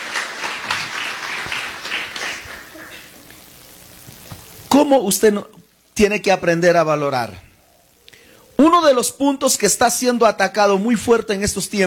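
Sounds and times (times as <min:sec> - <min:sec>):
congregation applauding: 0:00.0 - 0:03.2
speech: 0:04.8 - 0:07.5, 0:08.6 - 0:11.8.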